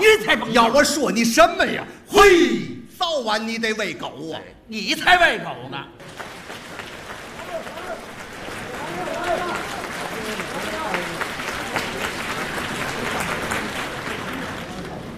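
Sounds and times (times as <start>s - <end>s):
performers speaking: 0.0s - 6.0s, 7.3s - 12.2s
speech: 0.5s - 6.2s
audience applause after a Chinese crosstalk comedy performance: 6.0s - 15.1s.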